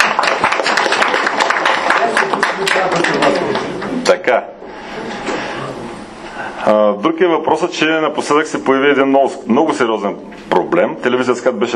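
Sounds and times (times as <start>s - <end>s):
crowd applauding: 0.0s - 4.0s
speech: 4.3s - 4.6s, 6.6s - 11.7s.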